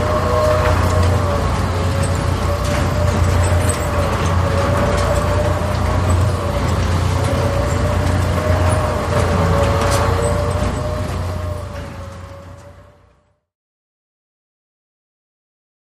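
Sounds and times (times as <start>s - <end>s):
circular hydraulic carnival ride: 0.0s - 13.3s.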